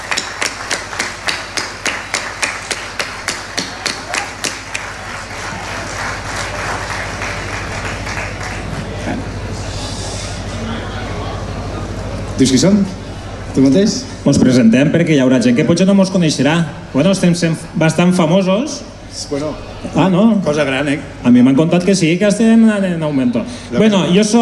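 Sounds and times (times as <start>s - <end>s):
audience applause: 0.0s - 9.6s
speech: 12.4s - 13.0s, 13.6s - 24.4s.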